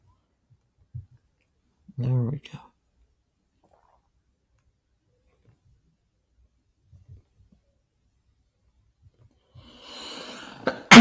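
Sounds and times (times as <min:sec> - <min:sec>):
speech: 0:02.0 - 0:02.7
loud sneeze: 0:10.5 - 0:11.0.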